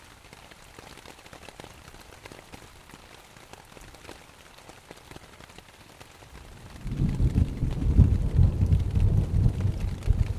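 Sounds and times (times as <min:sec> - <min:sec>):
morning rain pattering on a tent: 0:00.0 - 0:10.3
deep rough rumble: 0:06.8 - 0:10.3.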